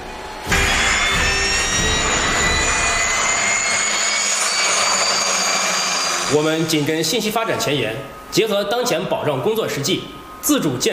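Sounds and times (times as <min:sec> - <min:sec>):
special-duty jet aircraft engine roar while landing: 0:00.1 - 0:08.3
speech: 0:06.3 - 0:10.9.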